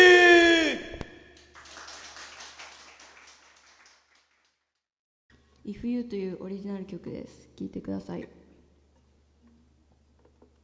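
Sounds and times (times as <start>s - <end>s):
faint audience applause at a singing competition: 1.4s - 4.7s
speech: 5.7s - 8.4s.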